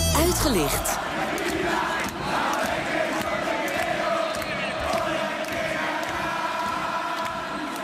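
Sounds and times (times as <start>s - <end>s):
football fans chanting in stadium: 0.1s - 7.8s
speech: 0.4s - 1.1s.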